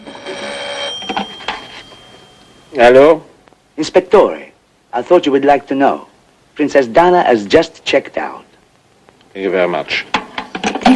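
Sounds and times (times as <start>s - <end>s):
hotel telephone ringing: 0.0s - 3.0s
speech: 2.8s - 8.4s, 9.3s - 10.2s.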